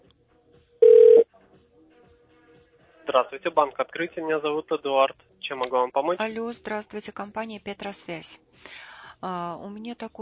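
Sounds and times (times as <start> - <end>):
telephone ringback tone connecting to a bank operator: 0.8 - 1.2
speech: 3.1 - 10.1.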